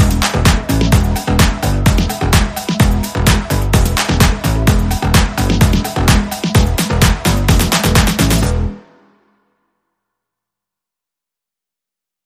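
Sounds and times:
hands clapping: 0:00.1 - 0:08.5.

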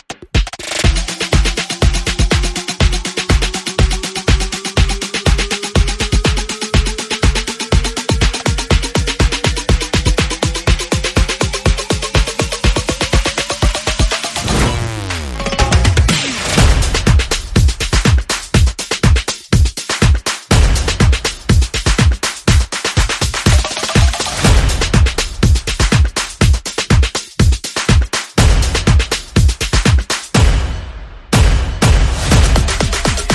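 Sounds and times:
percussion: 0:00.0 - 0:33.3
sound effects: 0:13.9 - 0:17.2.

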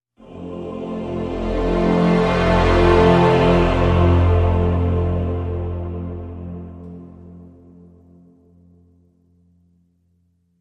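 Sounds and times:
epic growing music in F major: 0:00.2 - 0:08.2.

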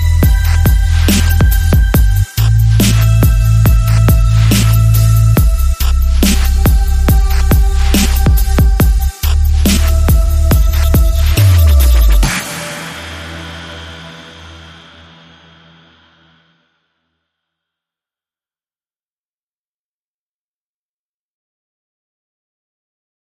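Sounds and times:
sub bass accent: 0:00.0 - 0:12.4.

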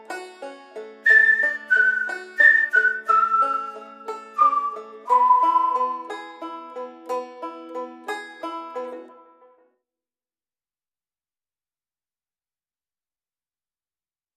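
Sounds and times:
banjo: 0:00.0 - 0:09.7
whistle: 0:01.1 - 0:06.2.

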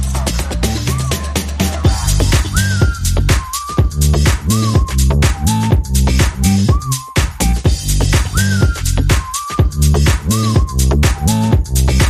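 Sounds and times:
vocals: 0:00.0 - 0:05.0
bass: 0:00.0 - 0:12.0
drums: 0:00.0 - 0:12.0.

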